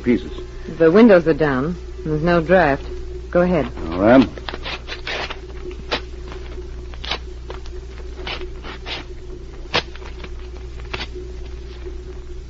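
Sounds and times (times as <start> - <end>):
speech: 0.0 - 4.5
steady low hum: 0.0 - 12.4
paper being torn into small pieces by hand: 3.8 - 11.9.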